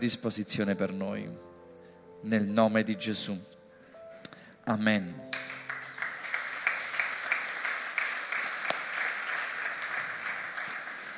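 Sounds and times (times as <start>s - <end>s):
speech: 0.0s - 1.6s, 2.2s - 3.5s, 4.7s - 5.3s
crowd applause: 5.4s - 11.1s.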